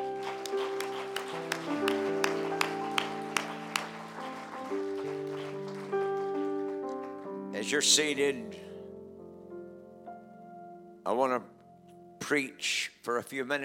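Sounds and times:
audience applauding: 0.0 - 7.4
speech: 7.6 - 8.7, 11.1 - 11.5, 12.3 - 13.6.

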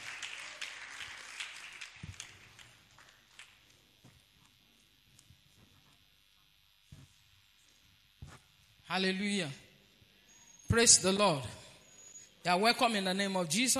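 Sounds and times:
audience clapping for the choir: 0.0 - 3.9
speech: 8.9 - 9.6, 10.7 - 11.6, 12.4 - 13.7.

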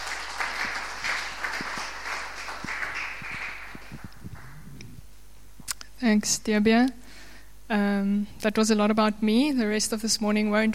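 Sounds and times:
audience applauding a speaker at a morning church meeting: 0.0 - 4.7
speech: 6.0 - 7.0, 7.7 - 10.7.

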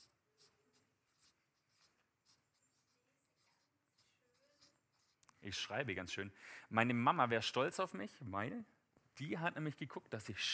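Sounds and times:
pen strokes of handwriting: 0.0 - 5.7
low hiss: 0.0 - 10.5
speech: 5.4 - 10.5.

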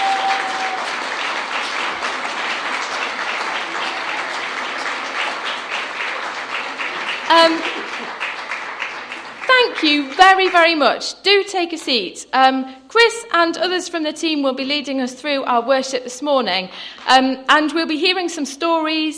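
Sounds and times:
audience applause: 0.0 - 10.6
speech: 9.8 - 19.1.

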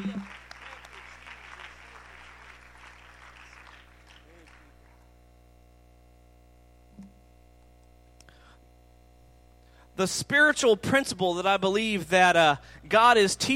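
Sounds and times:
crowd clapping in praise: 0.0 - 5.1
steady low electrical hum: 0.0 - 13.5
speech: 10.0 - 13.5.

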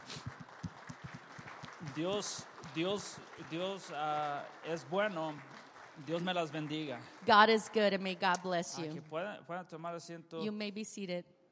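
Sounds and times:
audience applause: 0.0 - 8.2
speech: 2.0 - 11.4
person calling out loudly: 8.8 - 9.1.

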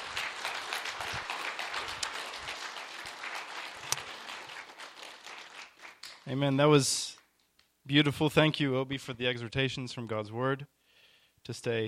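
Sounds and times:
applause: 0.0 - 7.3
speech: 6.3 - 7.2, 7.9 - 10.8, 11.4 - 11.8.

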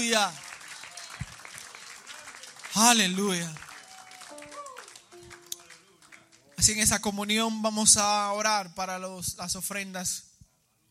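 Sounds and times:
speech: 0.0 - 0.4, 2.8 - 3.6, 6.6 - 10.3
audience applauding: 0.0 - 7.0.

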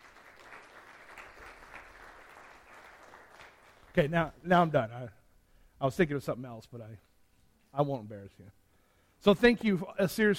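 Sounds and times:
audience applause: 0.0 - 4.1
speech: 4.0 - 5.2, 5.8 - 7.1, 7.7 - 8.6, 9.2 - 10.3.

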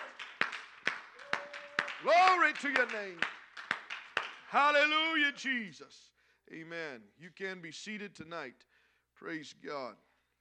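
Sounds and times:
audience hand clap of praise: 0.0 - 4.9
speech: 2.0 - 3.4, 4.5 - 10.1.

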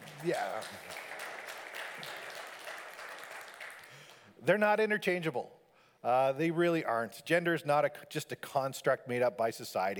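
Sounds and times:
audience clapping: 0.0 - 4.3
speech: 0.2 - 1.1, 4.4 - 9.9.

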